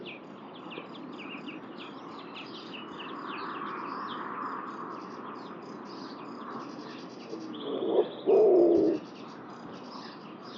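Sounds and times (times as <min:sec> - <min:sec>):
small birds chirping and twittering: 0:00.0 - 0:10.5
bird low hollow coo: 0:07.3 - 0:09.0.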